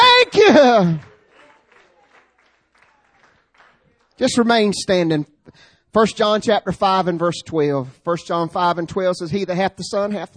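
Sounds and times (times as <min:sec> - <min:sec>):
audience clapping hands: 0:00.1 - 0:04.5
speech: 0:00.6 - 0:01.1, 0:04.2 - 0:10.3.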